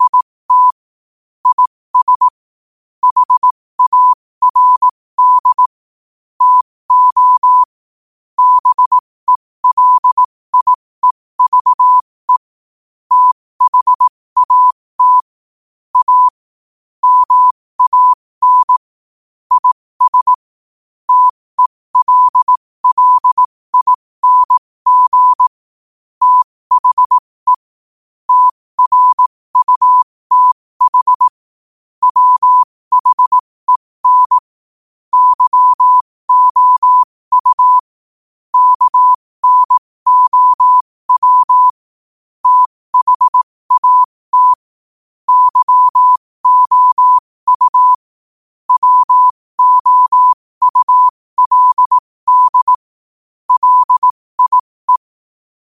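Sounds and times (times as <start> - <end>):
morse code at 5 wpm: 0.0 - 0.8, 1.4 - 2.4, 3.0 - 5.7, 6.4 - 7.8, 8.4 - 12.5, 13.1 - 15.4, 16.0 - 16.4, 17.0 - 18.9, 19.5 - 20.5, 21.1 - 25.6, 26.2 - 27.7, 28.3 - 31.4, 32.0 - 34.5, 35.1 - 37.9, 38.5 - 41.8, 42.4 - 44.7, 45.3 - 48.1, 48.7 - 52.9, 53.5 - 55.1.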